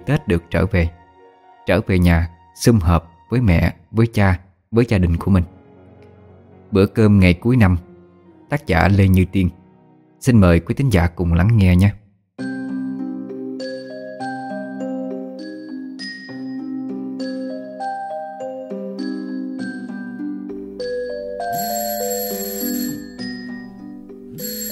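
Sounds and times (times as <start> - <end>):
speech: 0.0 - 1.0, 1.6 - 5.6, 6.7 - 7.9, 8.5 - 9.6, 10.2 - 12.0
phone alarm ringing: 21.3 - 24.7.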